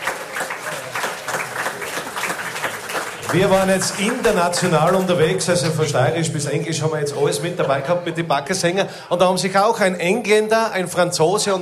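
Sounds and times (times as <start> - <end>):
audience applause: 0.0 - 6.0
speech: 3.3 - 11.5.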